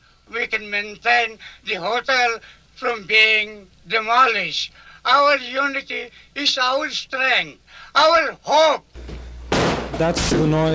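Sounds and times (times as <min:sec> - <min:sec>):
speech: 0:00.6 - 0:09.1, 0:10.0 - 0:10.7
sheriff's sledgehammer breaking in a locked door of the International Hotel: 0:09.5 - 0:10.3.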